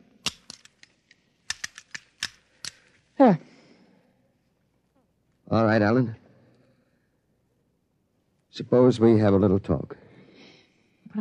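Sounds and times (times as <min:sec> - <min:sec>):
metallic clicks of a firing pin being put back into a pistol: 0:00.1 - 0:03.0
speech: 0:03.2 - 0:03.4, 0:05.5 - 0:06.2, 0:08.6 - 0:10.0.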